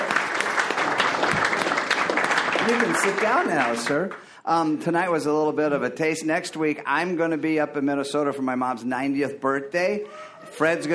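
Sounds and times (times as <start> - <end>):
group applauding: 0.0 - 4.4
speech: 2.7 - 10.9.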